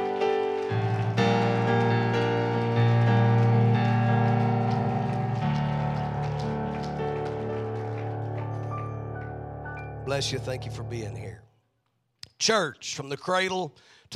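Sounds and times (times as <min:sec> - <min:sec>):
audience clapping hands in praise: 0:00.0 - 0:11.3
speech: 0:10.1 - 0:11.5, 0:12.5 - 0:14.1.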